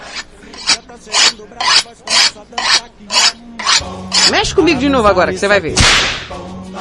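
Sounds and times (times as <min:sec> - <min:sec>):
knife being sharpened: 0:00.0 - 0:04.4
speech: 0:01.0 - 0:06.7.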